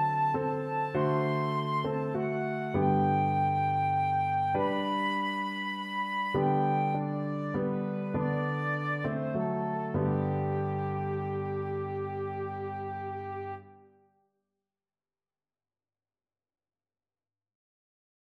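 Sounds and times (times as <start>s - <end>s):
piano trio: 0.0s - 13.5s.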